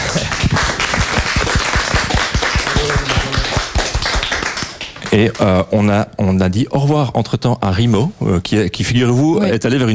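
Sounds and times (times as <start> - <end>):
audience applause: 0.0 - 5.2
speech: 5.1 - 9.9.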